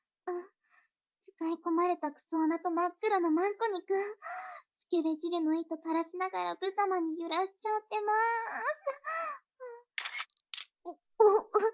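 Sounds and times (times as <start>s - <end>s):
speech: 1.4s - 9.2s, 10.8s - 11.7s
camera shutter clicks as photos are taken: 10.0s - 10.7s.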